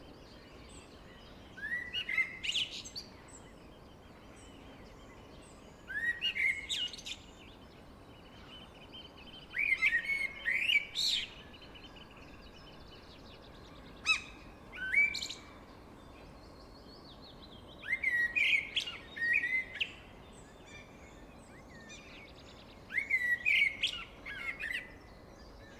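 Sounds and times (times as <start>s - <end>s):
blackbird whistled song: 0.0s - 7.6s, 8.2s - 25.7s.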